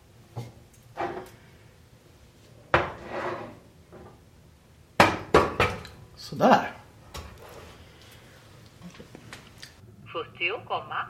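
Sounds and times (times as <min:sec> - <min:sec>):
saucepan being lifted off the stove with metallic clanks: 0:02.8 - 0:03.6
speech: 0:06.3 - 0:06.8, 0:10.4 - 0:11.0.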